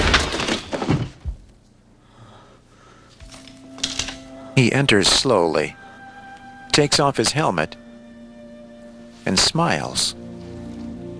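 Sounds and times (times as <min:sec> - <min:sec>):
splintering crack of door: 0:00.0 - 0:01.2
locked wooden door kicked open: 0:00.0 - 0:01.4
faint steady low hum: 0:01.4 - 0:11.1
speech: 0:04.6 - 0:05.8, 0:06.8 - 0:07.8, 0:09.2 - 0:10.4.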